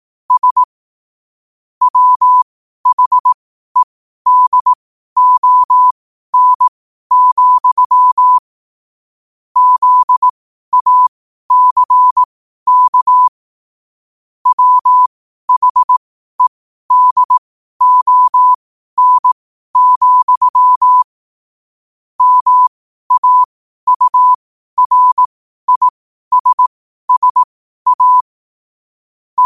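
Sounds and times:
morse code at 5 wpm: 0:00.3 - 0:00.7, 0:01.8 - 0:08.4, 0:09.6 - 0:13.3, 0:14.4 - 0:21.1, 0:22.2 - 0:28.3.

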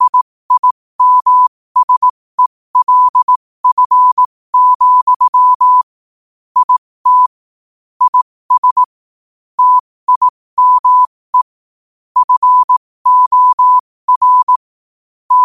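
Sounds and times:
morse code at 5 wpm: 0:00.0 - 0:02.1, 0:02.8 - 0:05.9, 0:06.6 - 0:07.4, 0:08.0 - 0:08.9, 0:09.6 - 0:11.6, 0:12.2 - 0:14.6.

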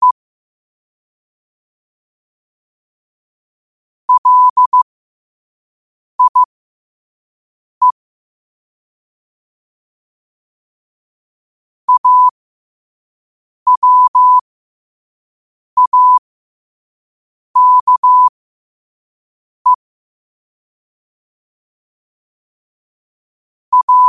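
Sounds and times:
morse code at 5 wpm: 0:04.1 - 0:04.8, 0:06.2 - 0:06.5, 0:11.9 - 0:12.3, 0:13.7 - 0:14.4, 0:15.8 - 0:16.2, 0:17.6 - 0:18.3, 0:23.7 - 0:24.0.

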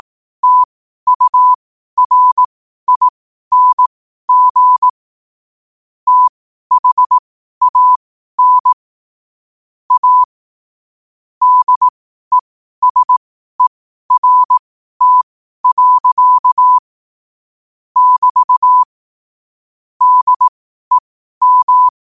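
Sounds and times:
morse code at 5 wpm: 0:00.0 - 0:05.0, 0:06.1 - 0:08.8, 0:09.9 - 0:10.3, 0:11.4 - 0:16.8, 0:18.0 - 0:18.9, 0:20.0 - 0:22.0.

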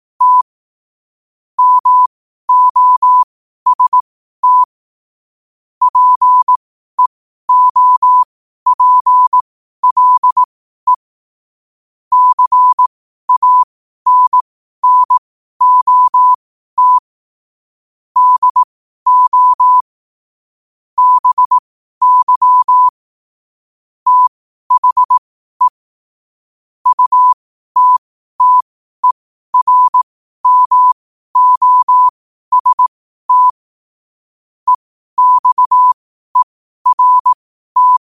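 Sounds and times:
morse code at 5 wpm: 0:00.2 - 0:00.4, 0:01.6 - 0:04.7, 0:05.9 - 0:11.0, 0:12.1 - 0:17.1, 0:18.2 - 0:19.9, 0:21.0 - 0:23.0, 0:24.1 - 0:25.8, 0:26.8 - 0:33.6, 0:34.7 - 0:37.9.

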